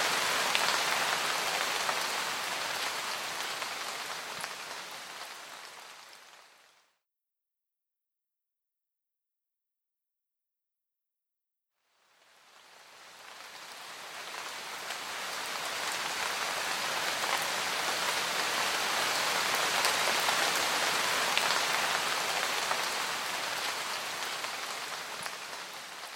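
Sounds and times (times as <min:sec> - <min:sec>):
rain: 0:00.0 - 0:06.8, 0:12.2 - 0:26.1.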